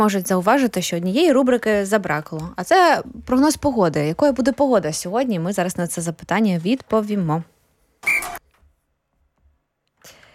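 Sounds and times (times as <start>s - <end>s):
speech: 0.0s - 7.5s
shrill whistle blast: 8.0s - 8.4s.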